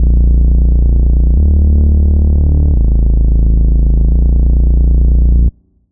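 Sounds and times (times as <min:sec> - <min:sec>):
bass: 0:00.0 - 0:05.8.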